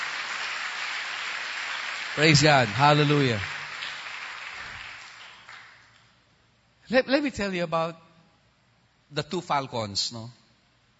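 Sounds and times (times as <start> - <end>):
audience applause: 0.0 - 5.9
speech: 2.2 - 3.5, 6.9 - 8.0, 9.1 - 10.4.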